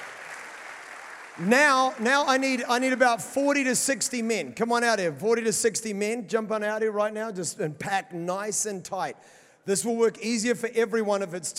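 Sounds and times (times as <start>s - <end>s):
audience applause: 0.0s - 3.0s
speech: 1.4s - 11.5s.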